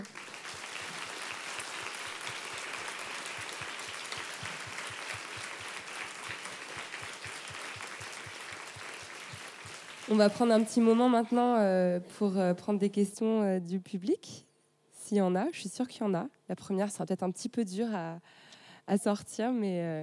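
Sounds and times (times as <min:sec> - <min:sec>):
audience applause: 0:00.0 - 0:10.8
speech: 0:10.1 - 0:14.5, 0:15.1 - 0:20.0.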